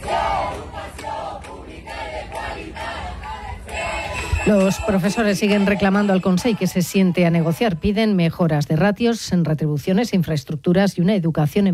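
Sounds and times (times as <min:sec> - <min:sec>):
teachers' protest crowd shouting: 0:00.0 - 0:07.8
speech: 0:04.4 - 0:11.7.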